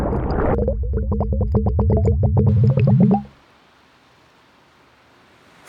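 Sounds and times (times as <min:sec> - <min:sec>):
soundscape: 0:00.1 - 0:03.3.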